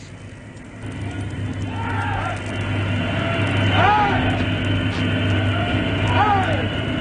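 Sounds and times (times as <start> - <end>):
loud constant engine drone and hum: 0.0 - 6.9
ship's crew of men shouting hurrahs: 1.6 - 4.5, 5.4 - 6.8.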